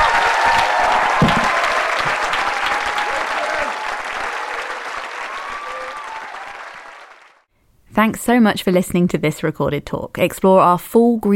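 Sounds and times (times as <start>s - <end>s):
audience applause: 0.0s - 7.5s
speech: 8.0s - 11.3s.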